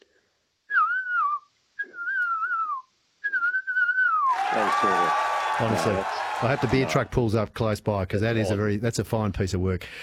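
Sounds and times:
person whistling an imitation of a ground cuckoo-shrike call: 0.7 - 4.3
speech: 4.6 - 10.0.

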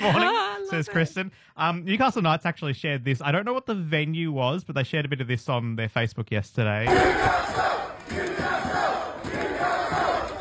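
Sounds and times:
laughter: 0.0 - 1.2
speech: 0.0 - 8.7
large crowd of fans cheering and chanting in unison: 6.9 - 10.3.

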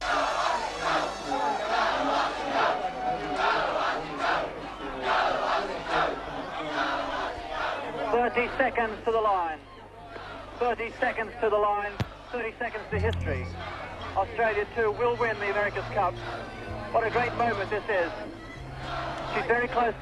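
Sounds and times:
crowd cheering wildly at the Royal Perth Yacht Club: 0.0 - 8.1, 13.2 - 20.0
speech: 8.6 - 9.8, 10.6 - 20.0.

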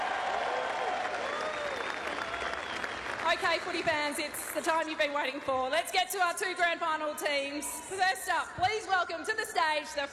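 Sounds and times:
audience applause: 0.0 - 5.4
speech: 3.3 - 10.1.

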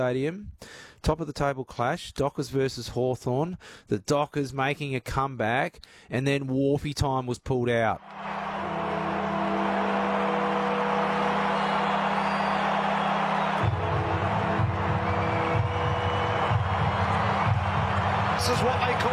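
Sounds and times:
speech: 0.0 - 8.5
stadium crowd noise at Perth Stadium: 8.0 - 19.1.

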